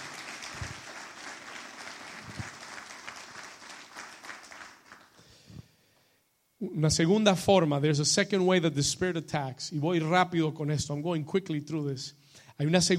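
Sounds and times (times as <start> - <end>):
crowd applause: 0.0 - 5.2
speech: 6.6 - 12.9.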